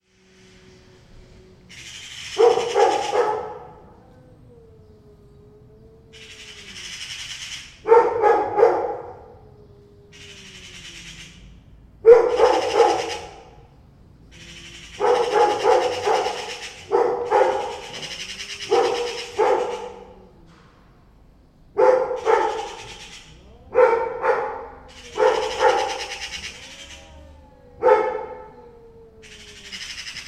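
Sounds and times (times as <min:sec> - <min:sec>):
harsh rasping bird chatter: 0:01.7 - 0:03.8, 0:06.1 - 0:08.2, 0:10.1 - 0:11.6, 0:12.3 - 0:13.6, 0:14.3 - 0:20.3, 0:22.0 - 0:28.0, 0:28.6 - 0:30.2
dog barking: 0:01.7 - 0:04.0, 0:07.8 - 0:09.5, 0:12.0 - 0:13.7, 0:14.4 - 0:20.6, 0:21.7 - 0:30.2.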